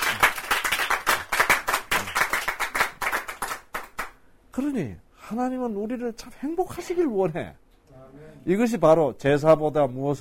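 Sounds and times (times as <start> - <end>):
audience clapping: 0.0 - 4.2
speech: 4.6 - 10.1.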